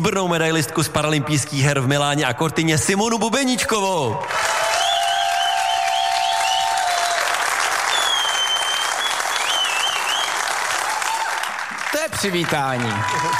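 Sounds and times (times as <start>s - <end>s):
speech: 0.0s - 4.6s, 12.2s - 13.3s
large audience applause: 4.2s - 13.3s
faint cheering: 4.3s - 11.6s, 12.6s - 13.3s
high whistle-like tones: 7.9s - 10.4s.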